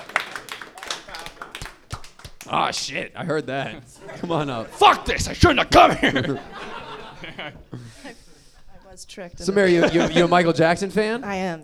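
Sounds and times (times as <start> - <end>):
audience applauding: 0.0 - 11.6
laughter: 0.0 - 11.6
speech: 2.5 - 6.7, 7.3 - 8.2, 9.0 - 11.6.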